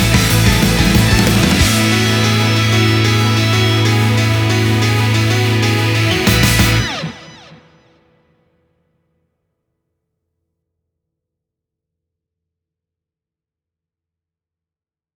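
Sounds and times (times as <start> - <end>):
instrumental music: 0.0 - 7.7.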